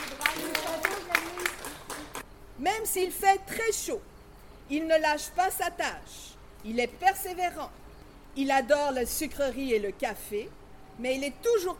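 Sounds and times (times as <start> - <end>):
audience clapping at a diploma presentation: 0.0 - 2.3
speech: 2.6 - 4.1, 4.7 - 7.8, 8.4 - 11.7.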